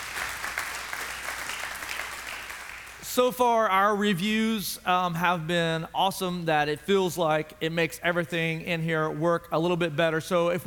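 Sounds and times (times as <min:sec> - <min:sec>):
audience applause: 0:00.0 - 0:03.0
speech: 0:03.2 - 0:10.6.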